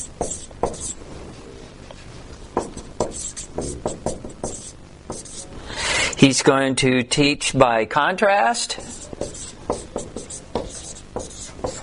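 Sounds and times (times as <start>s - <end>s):
writing on a board: 0.0s - 1.0s, 2.6s - 5.5s, 8.8s - 11.8s
speech: 6.2s - 9.0s.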